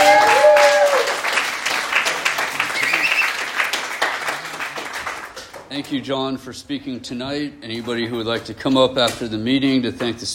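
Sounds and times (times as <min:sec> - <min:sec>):
audience applause: 0:00.0 - 0:05.6
whistle or cheer: 0:02.7 - 0:03.5
speech: 0:05.8 - 0:10.3.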